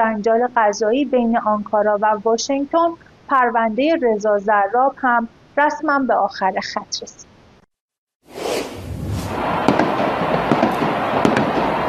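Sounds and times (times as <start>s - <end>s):
speech: 0.0s - 7.3s
fireworks at football fans' street celebration in Buenos Aires: 8.4s - 11.8s.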